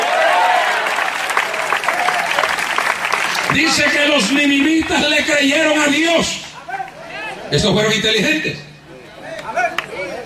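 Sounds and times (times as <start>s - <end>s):
audience applause: 0.0s - 5.2s
speech: 3.6s - 6.4s, 7.5s - 8.7s.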